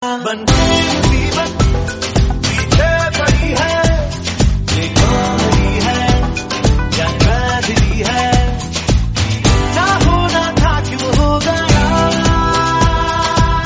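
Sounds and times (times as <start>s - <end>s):
Hindi song: 0.2s - 13.6s.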